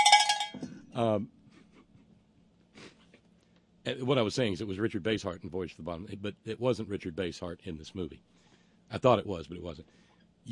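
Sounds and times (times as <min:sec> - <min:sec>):
cowbell clank: 0:00.0 - 0:00.6
low hum: 0:00.0 - 0:10.5
speech: 0:01.0 - 0:01.4, 0:03.9 - 0:10.5.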